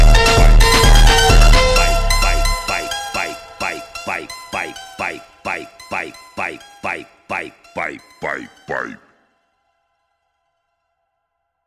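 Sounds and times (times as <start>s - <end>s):
phonk music: 0.0s - 9.2s.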